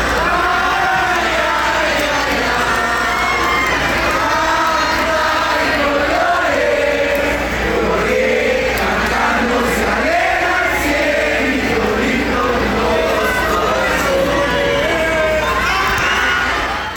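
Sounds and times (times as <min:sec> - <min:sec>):
shouts and cheers: 0:00.0 - 0:05.5, 0:12.9 - 0:16.9
large stadium crowd singing a folk song: 0:00.0 - 0:16.9.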